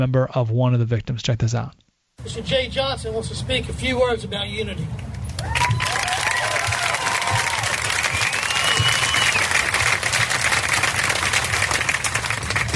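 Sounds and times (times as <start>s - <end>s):
speech: 0.0s - 5.7s
crowd clapping at outdoor rally: 5.1s - 12.7s
whistles: 7.3s - 9.8s.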